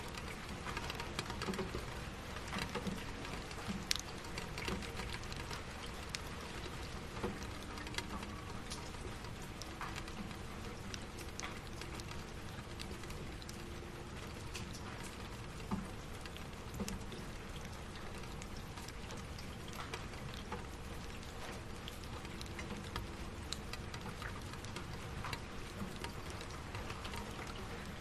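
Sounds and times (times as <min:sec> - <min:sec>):
soft rain on window glass surface: 0:00.0 - 0:27.9.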